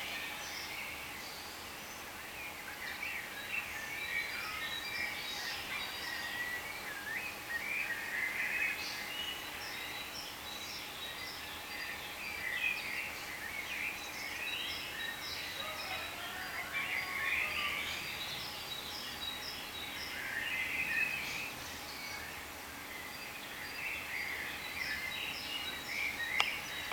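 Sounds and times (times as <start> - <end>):
many birds chirping: 0.0 - 26.9.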